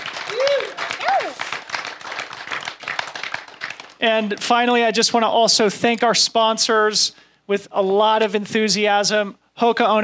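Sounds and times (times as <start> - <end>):
crowd applauding: 0.0 - 4.5
scattered cheers: 0.2 - 1.5
rising-and-falling whistles or whoops: 0.3 - 1.5
speech: 4.0 - 10.0.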